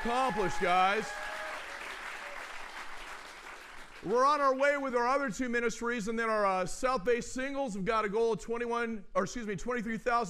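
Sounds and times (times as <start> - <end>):
speech: 0.0 - 1.2, 4.0 - 10.2
audience applause: 0.0 - 4.1.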